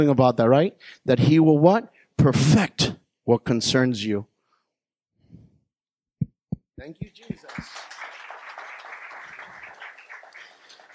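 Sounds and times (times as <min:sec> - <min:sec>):
speech: 0:00.0 - 0:04.3, 0:06.8 - 0:07.9
crowd clapping in a reverberant room: 0:06.8 - 0:10.9.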